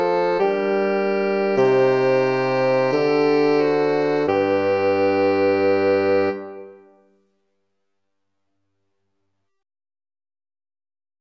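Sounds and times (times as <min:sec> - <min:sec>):
instrumental church piece in G minor: 0:00.0 - 0:07.3.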